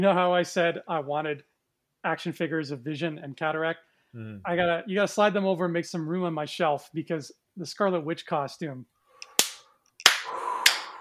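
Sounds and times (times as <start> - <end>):
speech: 0.0 - 8.9
slow hand claps: 9.2 - 11.0.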